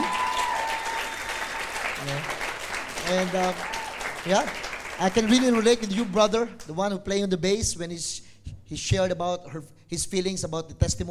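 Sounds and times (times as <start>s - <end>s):
audience applause: 0.0s - 6.6s
speech: 3.1s - 11.1s.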